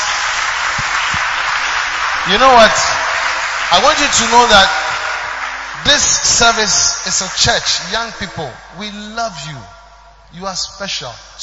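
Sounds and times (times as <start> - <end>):
crowd applause: 0.0 - 8.9
speech: 2.3 - 3.1, 3.7 - 4.8, 5.8 - 11.4.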